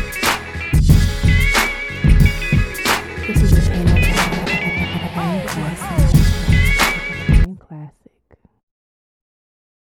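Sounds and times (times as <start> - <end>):
Alabama blues music: 0.0 - 7.5.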